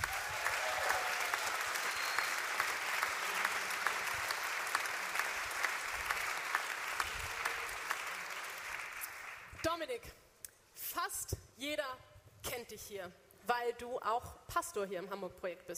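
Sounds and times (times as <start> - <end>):
audience applause: 0.0 - 9.6
speech: 9.8 - 10.2, 11.0 - 15.7.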